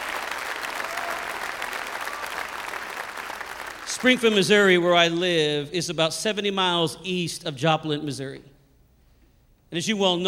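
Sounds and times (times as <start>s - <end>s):
audience clapping: 0.0s - 4.6s
speech: 4.0s - 8.5s, 9.7s - 10.2s.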